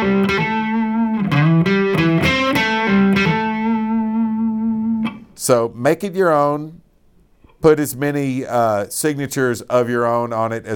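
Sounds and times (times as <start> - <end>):
distorted electric guitar playing hammer-ons and pull-offs: 0.0 - 5.4
speech: 5.5 - 6.8, 7.6 - 10.7.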